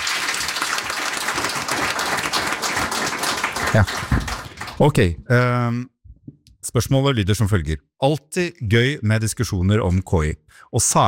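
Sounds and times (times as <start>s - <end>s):
audience applause: 0.0s - 5.0s
speech: 3.7s - 5.9s, 6.7s - 11.0s.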